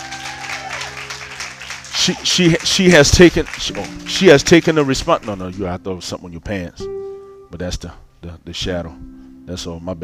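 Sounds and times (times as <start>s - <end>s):
audience applause: 0.0s - 5.6s
speech: 2.0s - 10.0s.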